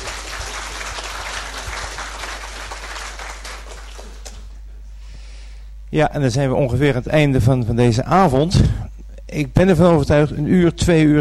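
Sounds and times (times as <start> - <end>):
audience applauding: 0.0 - 4.6
speech: 5.9 - 11.1.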